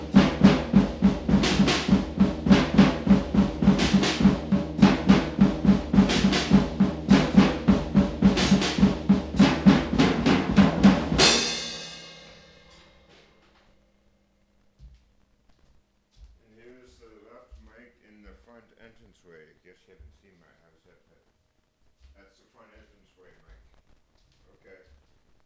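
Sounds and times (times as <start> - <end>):
drum track: 0.0 - 13.7.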